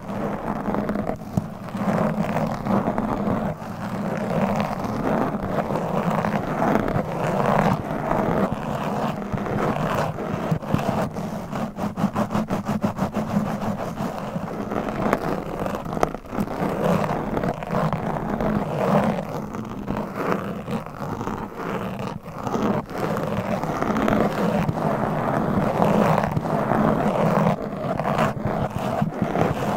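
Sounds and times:
microphone scratching: 0.0s - 29.7s.

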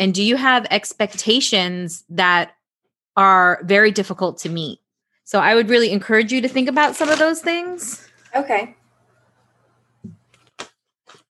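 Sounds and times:
speech: 0.0s - 2.6s, 3.2s - 8.8s
Tarot cards being shuffled: 6.5s - 7.5s.

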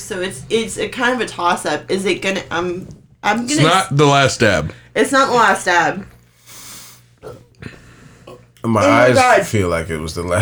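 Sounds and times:
speech: 0.1s - 6.1s, 8.6s - 10.4s
breathy hiss: 6.2s - 8.5s.

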